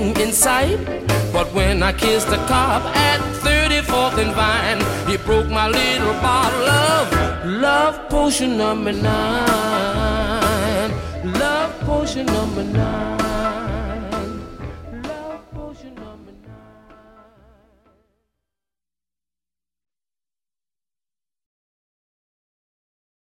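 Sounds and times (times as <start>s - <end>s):
doo-wop singing: 0.0s - 17.7s.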